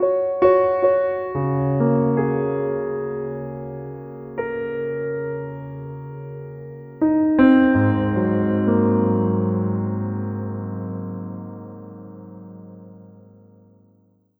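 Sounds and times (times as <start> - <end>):
piano: 0.0 - 14.3.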